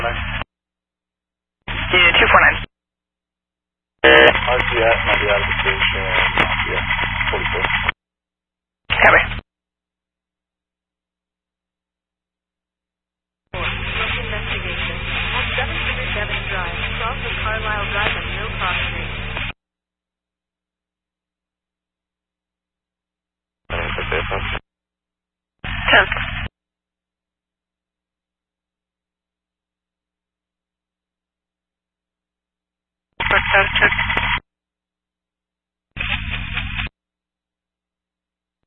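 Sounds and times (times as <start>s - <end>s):
radio static: 0.0s - 0.4s, 1.7s - 2.7s, 4.0s - 8.0s, 8.9s - 9.4s, 13.6s - 19.6s, 23.7s - 24.6s, 25.6s - 26.5s, 33.2s - 34.4s, 36.0s - 36.9s.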